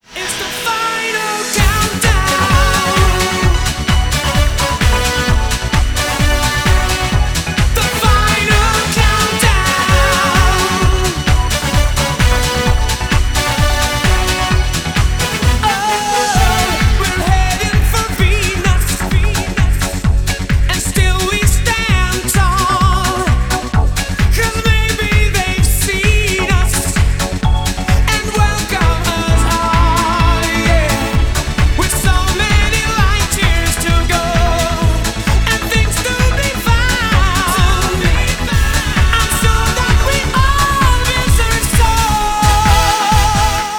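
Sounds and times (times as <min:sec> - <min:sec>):
remix of classic foreign rock: 0:00.0 - 0:43.7.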